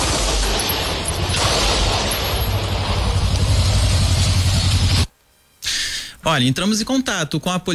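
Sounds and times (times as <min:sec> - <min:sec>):
gunfire during a shootout: 0:00.0 - 0:05.1
speech: 0:06.3 - 0:07.7.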